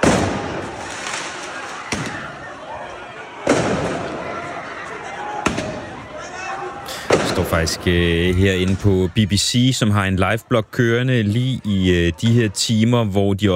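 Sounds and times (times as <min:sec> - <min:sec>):
fireworks set off in the street: 0:00.0 - 0:02.4, 0:03.4 - 0:04.5, 0:05.4 - 0:05.9, 0:06.9 - 0:09.0
speech: 0:07.4 - 0:13.5.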